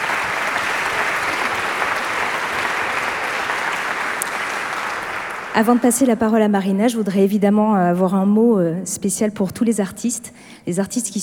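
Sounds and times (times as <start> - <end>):
audience applause: 0.0 - 6.1
speech: 5.6 - 11.2.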